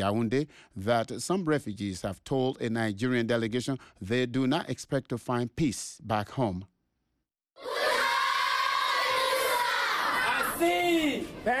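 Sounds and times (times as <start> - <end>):
speech: 0.0 - 6.7, 10.6 - 11.5
primary school children singing in welcome at the Minawawa refugee camp: 7.6 - 10.4.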